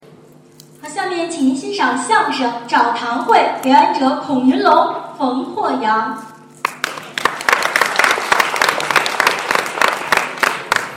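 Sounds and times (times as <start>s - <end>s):
speech: 0.8s - 6.2s
audience applause: 6.6s - 10.9s.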